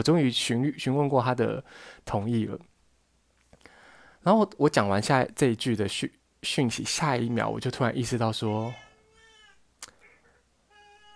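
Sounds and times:
speech: 0.0s - 2.7s, 4.2s - 8.8s
two cats meowing in a squabble: 8.5s - 9.6s.

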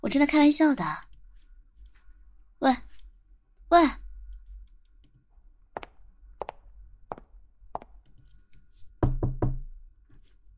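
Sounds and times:
speech: 0.0s - 1.1s, 2.6s - 2.9s, 3.7s - 4.0s
knocking on a door: 9.0s - 9.7s.

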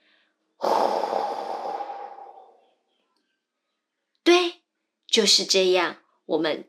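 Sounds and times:
long breathy exhale in a children's guided breathing exercise: 0.6s - 2.6s
speech: 5.2s - 6.6s.

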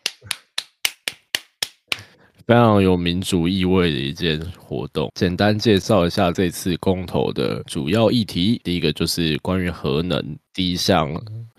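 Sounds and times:
crisp hand claps: 0.0s - 2.1s
speech: 2.5s - 11.5s.

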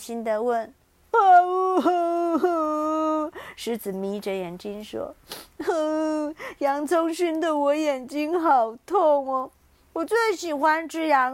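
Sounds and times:
speech: 0.0s - 2.7s, 3.6s - 11.3s
storyteller voice imitating loud crying: 1.2s - 3.4s, 5.6s - 6.8s.

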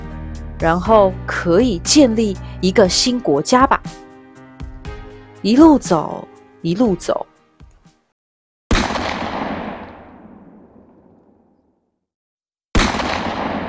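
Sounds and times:
speech: 0.6s - 4.0s, 5.4s - 7.3s
gunfire: 8.7s - 11.4s, 12.8s - 13.6s.

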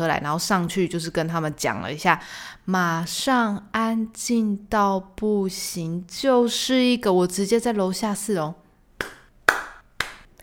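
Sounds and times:
speech: 0.0s - 8.6s
hand claps: 9.0s - 10.4s.

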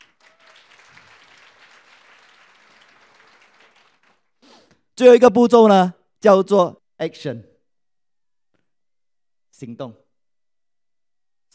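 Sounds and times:
crowd applauding: 0.0s - 4.4s
speech: 5.0s - 7.5s, 9.6s - 10.0s.

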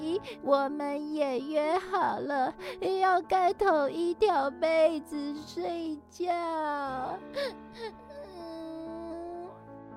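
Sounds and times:
speech: 0.2s - 8.1s
small child crying in a thin whiny tone: 6.4s - 9.5s.

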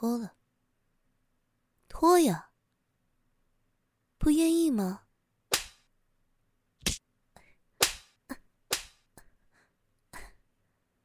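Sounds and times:
speech: 0.0s - 0.4s, 2.0s - 2.5s, 4.2s - 5.0s
slap across the face: 5.5s - 5.9s, 7.8s - 9.1s.

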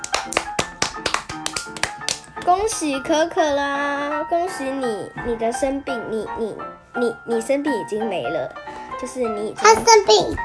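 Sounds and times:
hands clapping: 0.0s - 2.6s
speech: 2.4s - 10.4s.

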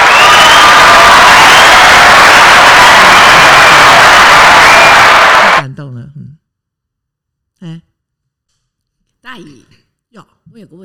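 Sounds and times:
applause: 0.0s - 5.6s
crowd cheering: 0.0s - 5.6s
speech: 9.4s - 9.6s, 10.2s - 10.8s.

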